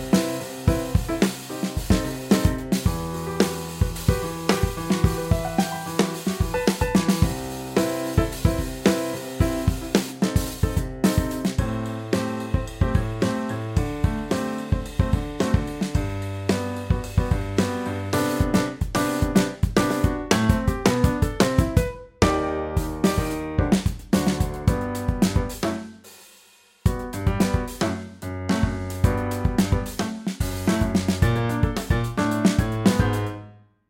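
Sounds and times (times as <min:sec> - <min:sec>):
snare drum: 0:00.0 - 0:33.4
kick drum: 0:01.8 - 0:03.2, 0:03.8 - 0:05.7, 0:06.4 - 0:07.6, 0:08.2 - 0:12.0, 0:12.6 - 0:16.3, 0:16.9 - 0:17.6, 0:18.4 - 0:25.7, 0:26.9 - 0:27.9, 0:28.5 - 0:33.3.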